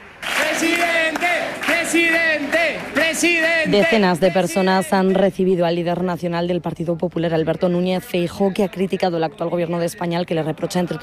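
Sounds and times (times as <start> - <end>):
crowd chanting at a packed political rally: 0.0 - 5.2
speech: 0.6 - 1.0, 3.2 - 11.0.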